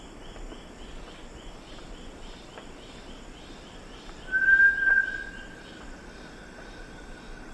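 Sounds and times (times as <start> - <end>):
Bartlett's tinamou song in the eastern lowlands of South America: 4.3 - 5.4.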